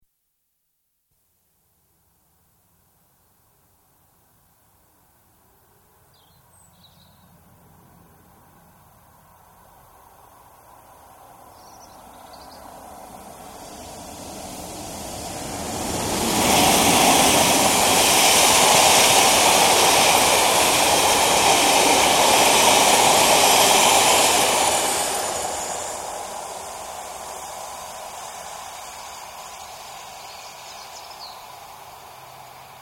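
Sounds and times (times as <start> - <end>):
diesel express train passing at high speed: 6.7 - 32.7.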